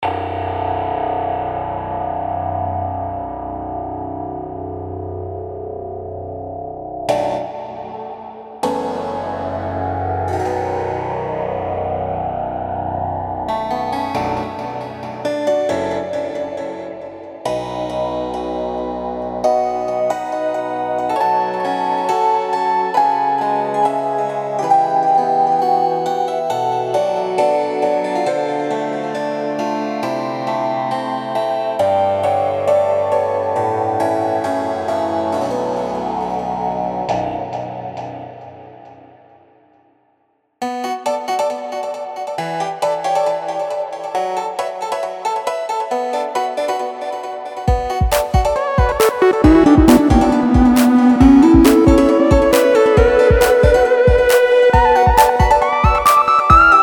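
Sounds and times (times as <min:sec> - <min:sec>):
spooky trance music: 0:00.1 - 0:39.2, 0:40.6 - 0:56.8.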